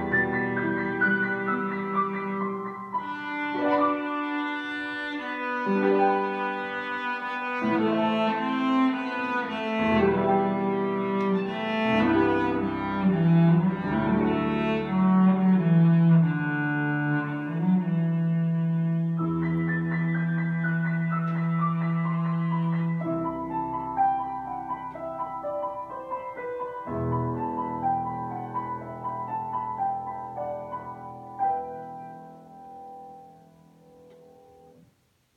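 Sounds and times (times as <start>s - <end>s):
cello: 0.0s - 32.1s
piano: 0.0s - 35.3s.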